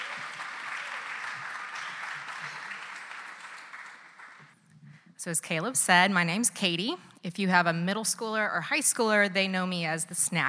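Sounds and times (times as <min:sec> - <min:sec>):
crowd applauding and cheering: 0:00.0 - 0:04.6
speech: 0:05.2 - 0:10.4.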